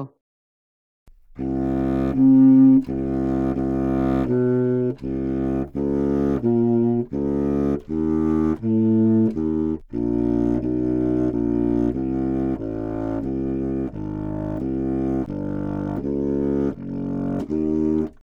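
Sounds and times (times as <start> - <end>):
contrabassoon: 1.1 - 18.3.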